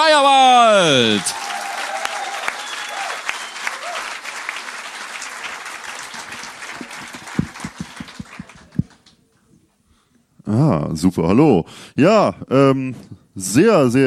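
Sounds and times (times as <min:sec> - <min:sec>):
speech: 0:00.2 - 0:01.4, 0:10.7 - 0:14.0
audience applause: 0:00.9 - 0:09.1.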